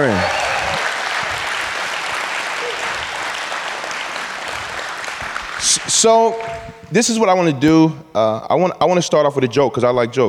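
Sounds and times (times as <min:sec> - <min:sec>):
audience clapping loudly: 0:00.0 - 0:06.7
speech: 0:05.9 - 0:10.2.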